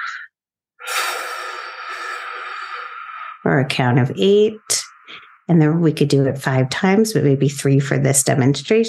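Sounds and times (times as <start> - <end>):
breath drawn in through the nose: 0.0 - 3.4
long deep exhale through the mouth: 0.8 - 3.4
speech: 3.4 - 4.7, 5.5 - 8.8.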